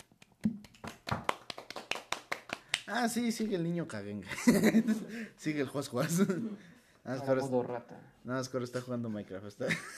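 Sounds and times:
applause: 0.7s - 2.9s
speech: 2.9s - 9.9s
laughter: 4.3s - 5.3s.

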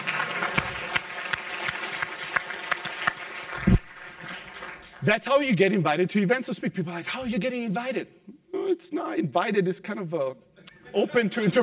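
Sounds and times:
sparse audience clapping at a speaking event: 0.0s - 5.2s
speech: 5.0s - 11.6s.

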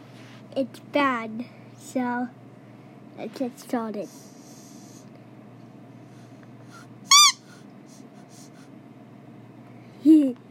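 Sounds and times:
speech: 0.6s - 2.4s, 3.2s - 4.3s
squeaky dog toy: 7.1s - 7.5s.

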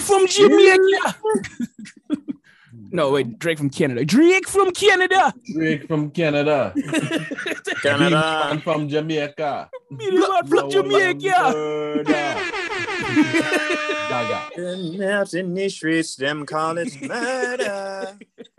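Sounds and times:
speech: 0.1s - 2.2s, 2.8s - 18.5s
laughter: 0.5s - 2.5s, 6.8s - 8.9s, 9.8s - 14.6s, 16.6s - 18.5s
loud brassy air horn blasts: 12.0s - 14.6s
people singing: 16.9s - 18.2s.

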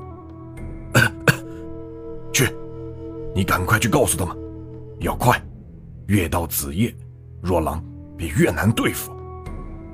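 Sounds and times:
person coughing: 0.9s - 1.6s
speech: 2.4s - 2.6s, 3.4s - 4.4s, 5.0s - 5.5s, 6.1s - 9.2s.

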